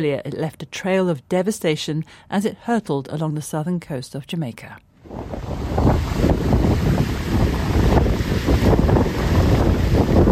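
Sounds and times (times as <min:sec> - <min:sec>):
speech: 0:00.0 - 0:06.4
howling hurricane-force wind over 230 km/h buffeting the microphone: 0:05.0 - 0:10.2.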